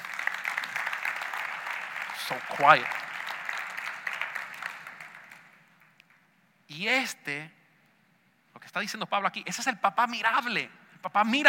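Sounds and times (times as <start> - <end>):
audience applause: 0.0 - 5.9
speech: 2.3 - 3.0, 6.8 - 7.6, 8.7 - 11.4.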